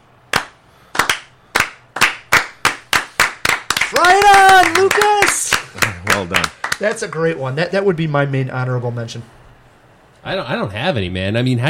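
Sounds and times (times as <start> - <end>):
slow hand clapping: 0.3 - 7.1
speech: 3.9 - 5.3, 6.2 - 9.4, 10.2 - 11.6.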